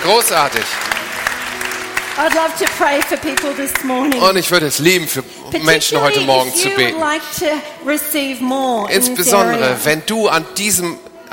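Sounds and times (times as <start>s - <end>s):
audience applause: 0.0s - 5.1s
speech: 0.1s - 1.0s, 2.2s - 11.1s.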